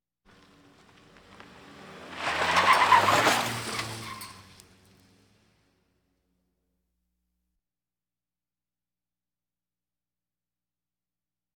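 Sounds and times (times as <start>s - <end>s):
various automobiles: 0.3s - 6.2s.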